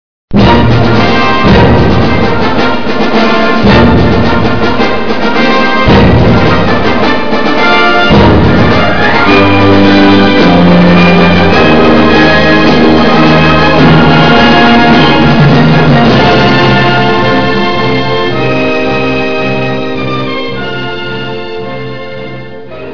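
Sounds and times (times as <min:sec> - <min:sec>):
accordion fanfare: 0:00.4 - 0:22.9.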